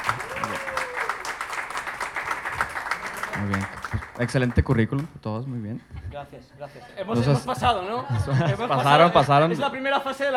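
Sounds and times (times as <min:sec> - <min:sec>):
audience applause: 0:00.0 - 0:05.1
speech: 0:03.4 - 0:10.3
laughter: 0:05.9 - 0:10.3.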